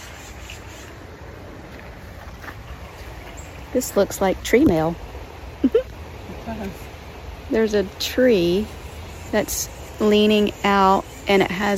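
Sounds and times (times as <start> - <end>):
running water of a small waterfall: 1.0 - 10.3
speech: 3.7 - 5.0, 6.5 - 6.9, 7.5 - 11.7.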